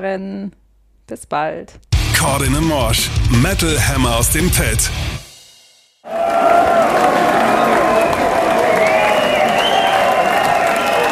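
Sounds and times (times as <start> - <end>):
speech: 0.0 - 5.2
cheers and whistles: 6.1 - 11.1
closing applause of a big concert audience: 6.1 - 11.1.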